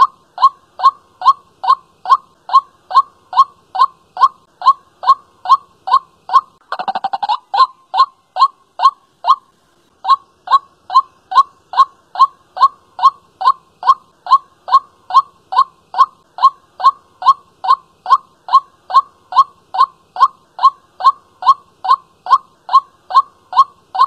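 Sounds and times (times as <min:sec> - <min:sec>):
white-breasted waterhen calling: 0:00.0 - 0:24.0.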